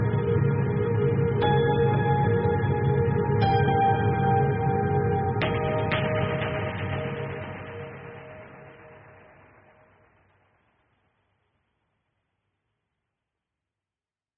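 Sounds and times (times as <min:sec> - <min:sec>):
mysterious cinematic ambient music: 0:00.0 - 0:09.5.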